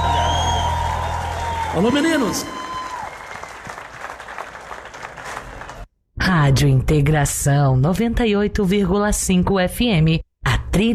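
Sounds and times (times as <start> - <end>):
studio audience applause on a live radio show: 0.0 - 5.9
speech: 1.8 - 2.6, 6.4 - 10.2, 10.8 - 10.9.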